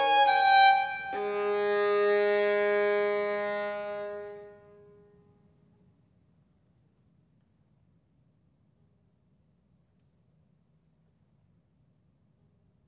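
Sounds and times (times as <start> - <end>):
violin sonata allegro: 0.0 - 4.8.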